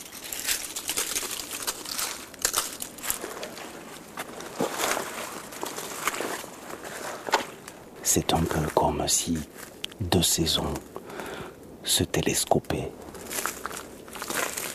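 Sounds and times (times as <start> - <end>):
footsteps crunching through a thick layer of dry leaves: 0.0 - 9.8, 13.0 - 14.7
speech: 8.1 - 11.0, 11.9 - 13.0.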